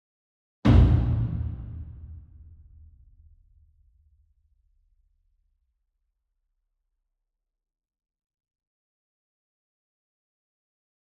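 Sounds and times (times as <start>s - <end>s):
60 inch taiko drum hit with soft beater from far: 0.7s - 2.6s.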